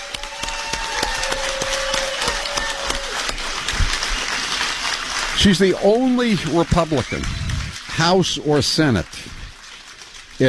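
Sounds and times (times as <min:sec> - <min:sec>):
crowd applause: 0:00.0 - 0:10.4
speech: 0:05.4 - 0:07.4, 0:08.0 - 0:09.3.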